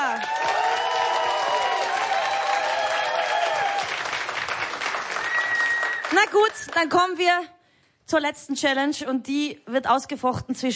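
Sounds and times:
audience applause: 0.0 - 6.9
speech: 6.1 - 10.7.

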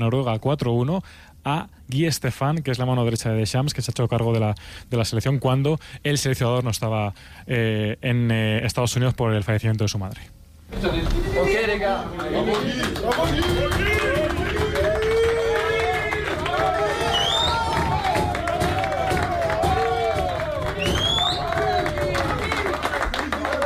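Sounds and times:
speech: 0.0 - 14.0
footballers clapping in a dressing room: 12.1 - 23.6
shouts and cheers: 13.1 - 23.6.

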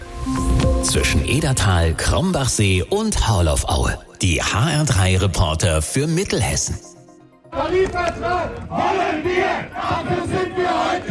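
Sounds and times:
speech: 0.2 - 7.0, 7.6 - 10.8
crowd of striking workers chanting and shouting: 7.5 - 11.0.

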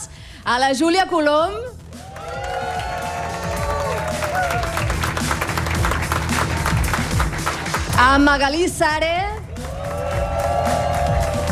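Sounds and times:
speech: 0.5 - 1.8, 8.0 - 9.3
audience applauding and cheering: 1.8 - 8.0, 9.4 - 11.5.

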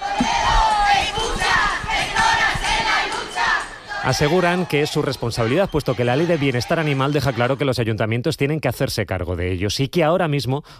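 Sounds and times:
large protest crowd chanting and shouting: 0.0 - 7.8
speech: 4.0 - 10.7.

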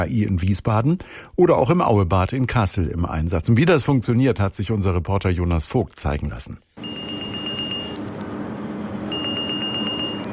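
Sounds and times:
speech: 0.0 - 7.1
faint hum: 0.0 - 10.3
smartwatch alarm beeping: 6.8 - 10.3.

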